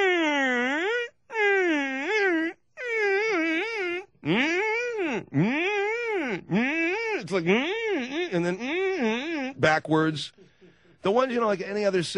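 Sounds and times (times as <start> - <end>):
person vocally imitating a police siren: 0.0 - 9.6
speech: 7.3 - 10.4, 11.0 - 12.1.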